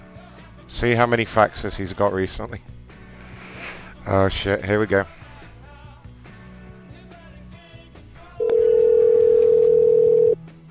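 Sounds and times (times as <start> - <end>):
speech: 0.7 - 2.7, 4.0 - 5.2
telephone line tone during a call being placed: 8.4 - 10.4.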